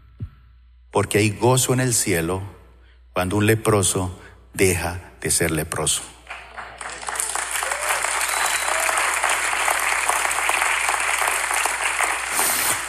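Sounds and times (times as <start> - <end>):
speech: 0.9 - 2.6, 3.2 - 6.2
large crowd applauding: 6.2 - 12.8.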